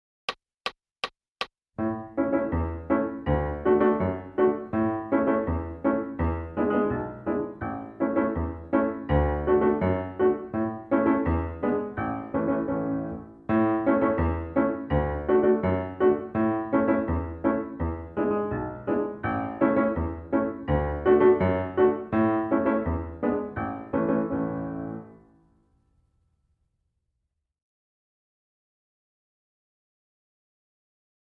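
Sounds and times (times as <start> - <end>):
piano: 1.8 - 26.0.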